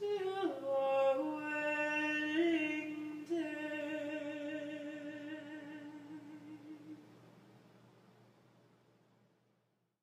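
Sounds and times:
person singing an Irish folk song a cappella with kulning: 0.0s - 7.1s.

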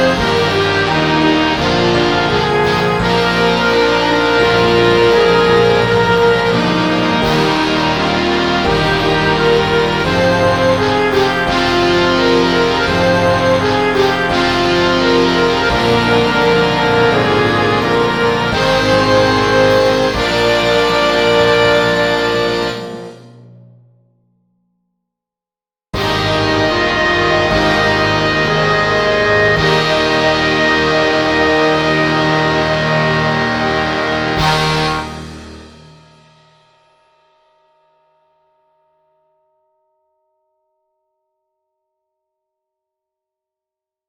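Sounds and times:
holiday orchestral rock remix: 0.0s - 23.2s, 26.0s - 35.8s.

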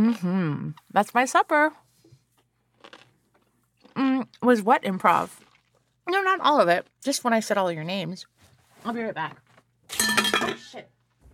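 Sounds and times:
speech: 0.0s - 1.8s, 4.0s - 5.4s, 6.1s - 11.0s
biting and crunching into a pickle: 2.7s - 4.4s, 5.2s - 5.9s.

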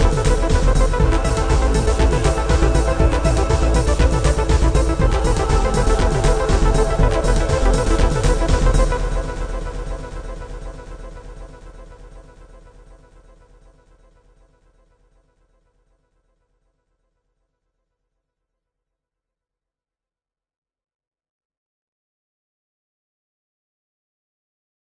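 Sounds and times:
epic intro music: 0.0s - 12.2s.

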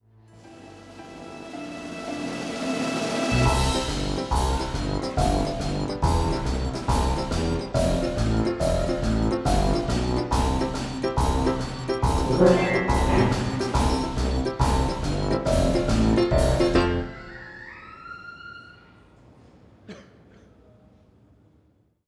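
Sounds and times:
instrumental music: 0.4s - 17.3s.

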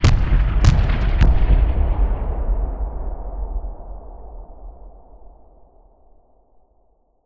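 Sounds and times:
city battle sounds: 0.0s - 2.1s.

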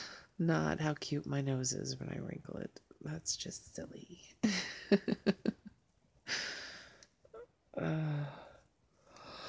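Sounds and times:
speech: 0.4s - 5.5s
person yawning: 7.8s - 8.6s.

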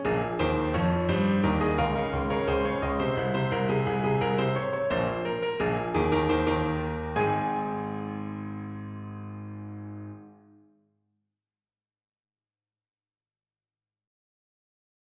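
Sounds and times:
piano: 0.0s - 10.7s.

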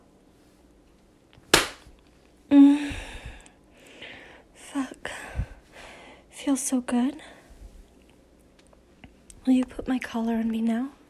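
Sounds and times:
hand slap on skin: 1.5s - 1.9s
breathy voiced gasp or moan: 2.6s - 4.4s
speech: 6.5s - 7.3s, 9.5s - 11.0s.

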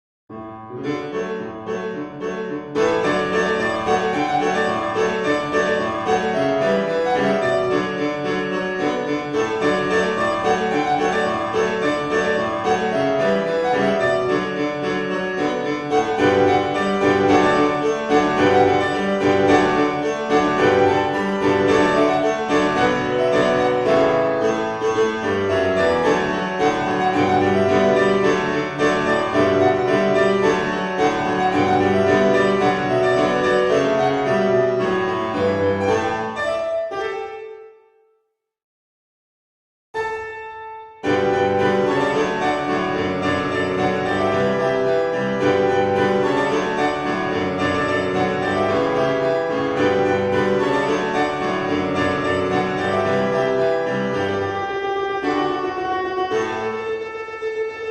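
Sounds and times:
piano cover: 0.3s - 37.9s, 40.0s - 57.8s.

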